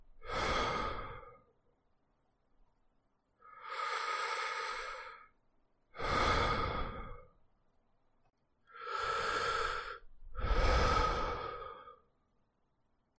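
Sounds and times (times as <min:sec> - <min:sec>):
breathing: 0:00.1 - 0:01.5, 0:03.4 - 0:05.4, 0:06.0 - 0:07.4, 0:08.7 - 0:12.1.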